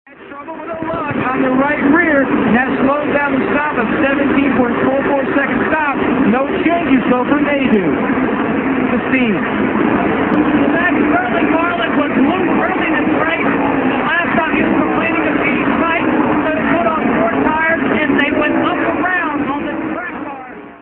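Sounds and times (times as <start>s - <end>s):
NASCAR stock car racing: 0.2s - 20.7s.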